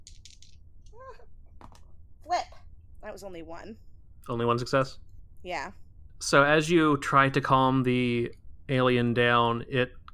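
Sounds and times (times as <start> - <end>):
two dice rolling: 0.0 - 0.6
speech: 2.2 - 10.0.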